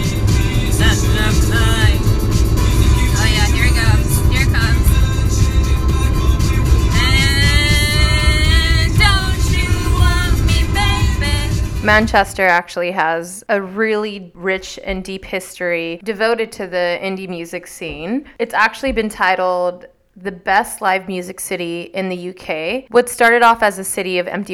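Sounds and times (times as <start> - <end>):
car engine and road noise driving from Stoke-on-Trent to Manchester: 0.0 - 12.4
speech: 11.9 - 24.5.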